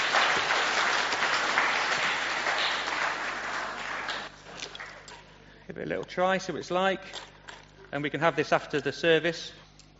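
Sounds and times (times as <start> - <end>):
audience applause: 0.0 - 5.0
speech: 5.8 - 7.3, 7.9 - 9.6.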